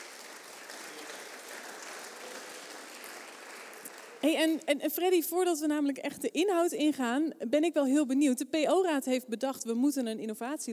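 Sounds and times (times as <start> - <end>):
audience applause: 0.0 - 4.3
speech: 4.2 - 10.7.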